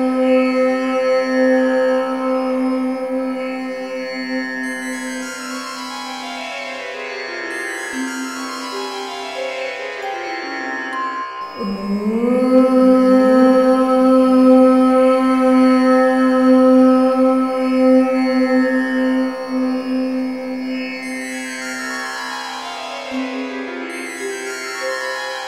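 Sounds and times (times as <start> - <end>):
woman chanting om: 0.0 - 6.2, 11.5 - 21.2.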